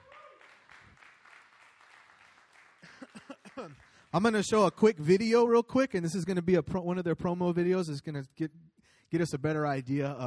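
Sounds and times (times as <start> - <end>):
audience applause welcoming members of Strong Tower Ministries: 0.0 - 4.4
speech: 3.6 - 10.2.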